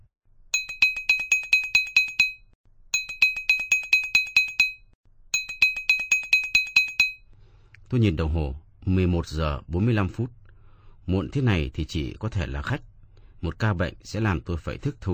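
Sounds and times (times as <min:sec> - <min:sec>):
doorbell ringing: 0:00.6 - 0:07.3
speech: 0:07.9 - 0:10.4, 0:11.1 - 0:15.1.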